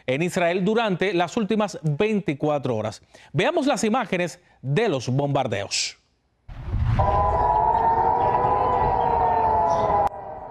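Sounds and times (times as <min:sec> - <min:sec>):
speech: 0:00.0 - 0:06.0, 0:06.6 - 0:07.6
air raid sirens sounding in Jerusalén: 0:06.8 - 0:10.5.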